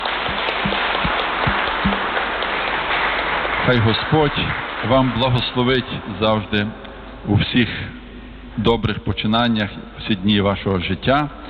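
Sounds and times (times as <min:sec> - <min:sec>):
applause for graduates: 0:00.0 - 0:06.6
speech: 0:03.7 - 0:08.0, 0:08.6 - 0:11.4.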